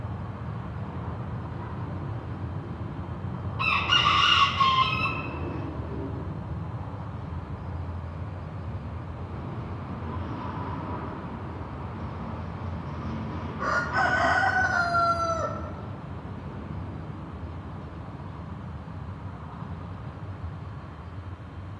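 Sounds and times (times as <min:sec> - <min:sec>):
traffic rumble: 0:00.0 - 0:21.7
rooster crowing: 0:03.6 - 0:05.6, 0:13.6 - 0:15.9.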